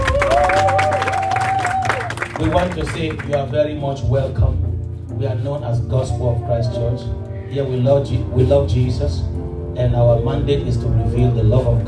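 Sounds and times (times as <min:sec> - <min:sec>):
church audience clapping: 0:00.0 - 0:03.6
speech: 0:02.4 - 0:04.6, 0:05.2 - 0:11.8.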